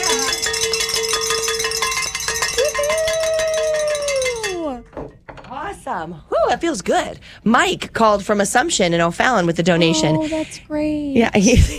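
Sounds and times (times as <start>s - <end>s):
bell rung rapidly in celebration: 0.0s - 5.3s
speech: 6.0s - 11.7s.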